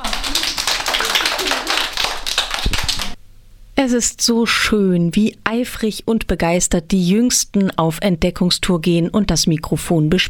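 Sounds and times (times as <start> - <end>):
children clapping hands: 0.0 - 3.2
speech: 3.8 - 10.2.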